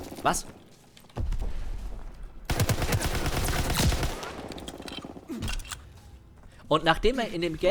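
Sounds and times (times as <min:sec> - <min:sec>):
speech: 0:00.2 - 0:00.6, 0:06.7 - 0:07.6
video game automatic gunfire from hip-firing: 0:02.5 - 0:05.3.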